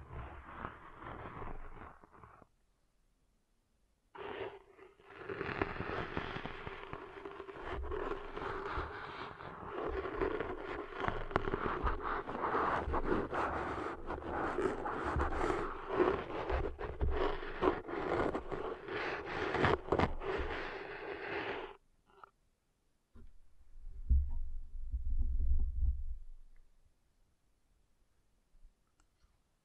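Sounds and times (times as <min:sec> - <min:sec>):
ear cleaning crackling, scratching and rubbing: 0:00.0 - 0:02.4, 0:04.2 - 0:21.8
soft low rumble: 0:23.2 - 0:26.8.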